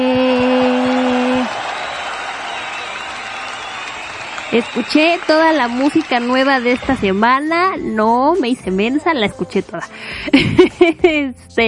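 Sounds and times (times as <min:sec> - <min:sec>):
applause: 0:00.2 - 0:07.6
speech: 0:04.5 - 0:11.6
laughter: 0:10.3 - 0:11.2.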